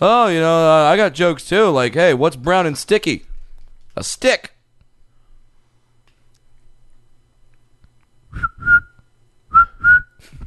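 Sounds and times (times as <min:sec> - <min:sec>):
speech: 0:00.0 - 0:03.3, 0:04.0 - 0:04.6
whistled imitation of cricket chirping: 0:08.3 - 0:10.2.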